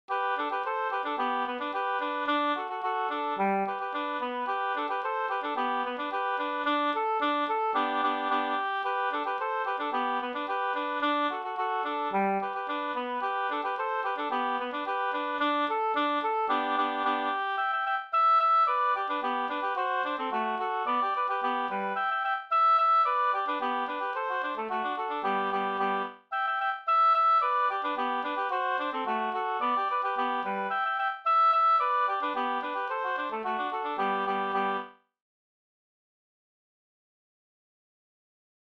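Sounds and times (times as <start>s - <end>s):
polka music: 0.1s - 34.9s.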